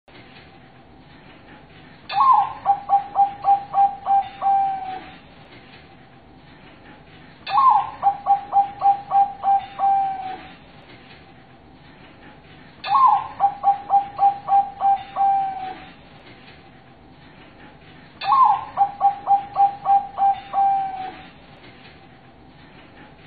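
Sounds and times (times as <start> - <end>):
zebra dove cooing master song: 2.1 - 5.2, 7.5 - 10.6, 12.9 - 16.0, 18.2 - 21.3.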